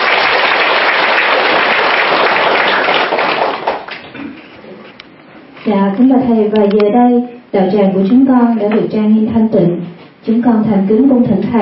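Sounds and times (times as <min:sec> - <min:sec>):
audience applause: 0:00.0 - 0:04.0
speech: 0:05.7 - 0:11.6.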